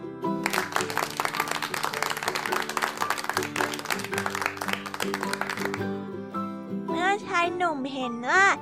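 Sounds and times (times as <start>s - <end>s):
children clapping: 0.4s - 6.0s
speech: 7.6s - 8.5s.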